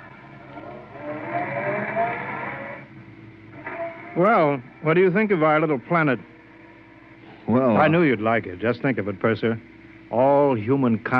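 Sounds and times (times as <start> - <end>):
car engine drone as a car drives toward a spaceport: 0.0 - 7.8
speech: 4.2 - 6.3, 7.5 - 11.1.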